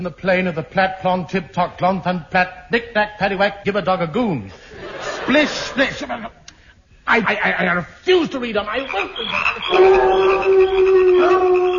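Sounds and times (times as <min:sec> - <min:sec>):
speech: 0:00.0 - 0:06.4, 0:07.1 - 0:11.7
laughter: 0:04.5 - 0:06.5, 0:08.6 - 0:11.7
howling meant as prairie dogs: 0:09.6 - 0:11.7.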